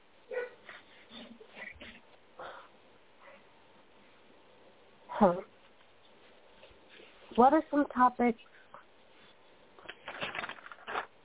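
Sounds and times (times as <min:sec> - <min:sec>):
dogs barking: 0:00.3 - 0:00.6
speech: 0:05.2 - 0:05.5, 0:07.4 - 0:08.6.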